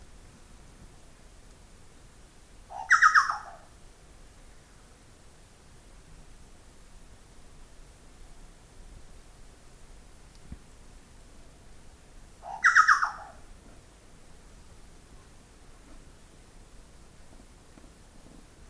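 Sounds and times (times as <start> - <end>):
chucao Scelorchilus rubecula calling: 2.7 - 3.7, 12.4 - 13.5.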